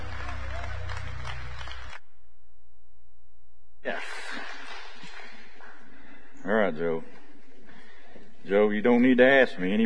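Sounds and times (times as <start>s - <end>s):
church congregation clapping during worship: 0.0s - 2.0s
speech: 3.9s - 4.2s, 6.4s - 7.2s, 8.4s - 9.8s.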